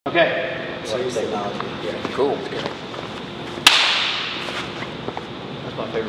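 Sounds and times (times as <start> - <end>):
speech: 0.1 - 2.8, 5.9 - 6.0
hand clap: 3.7 - 4.2.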